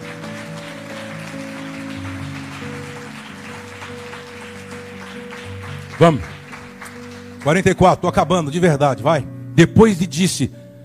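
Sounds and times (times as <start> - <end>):
audience applauding loudly: 0.0 - 8.3
speech: 6.0 - 6.4, 7.4 - 10.6.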